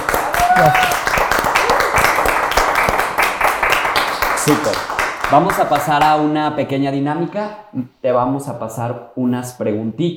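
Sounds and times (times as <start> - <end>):
applause: 0.0 - 6.2
speech: 0.6 - 1.0, 4.5 - 10.1.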